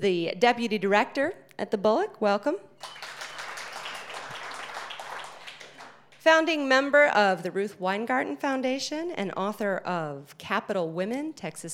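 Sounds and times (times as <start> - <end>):
speech: 0.0 - 3.0, 6.2 - 11.7
audience applause: 2.8 - 6.0.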